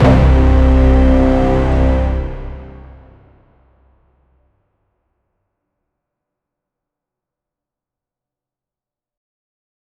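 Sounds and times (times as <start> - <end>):
heavy dramatic bass: 0.0 - 4.1.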